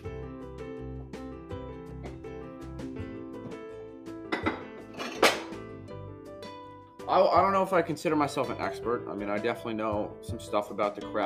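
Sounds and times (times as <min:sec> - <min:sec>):
music: 0:00.0 - 0:11.2
bowl clattering as grabbed for making banana pudding: 0:04.3 - 0:05.6
speech: 0:07.1 - 0:11.2.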